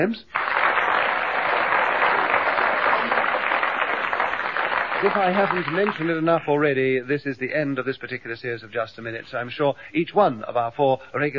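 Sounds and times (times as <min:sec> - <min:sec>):
speech: 0:00.0 - 0:00.4, 0:05.0 - 0:11.3
audience applause: 0:00.3 - 0:06.5.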